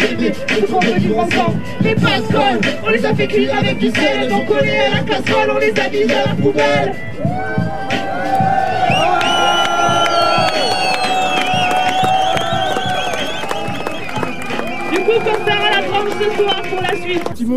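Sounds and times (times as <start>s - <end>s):
speech: 0.0s - 8.0s, 15.1s - 17.5s
protest crowd shouting at a demonstration: 6.8s - 17.2s.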